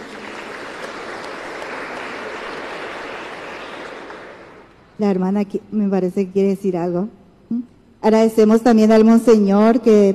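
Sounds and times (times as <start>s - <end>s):
crowd applause: 0.0s - 4.7s
speech: 5.0s - 10.1s.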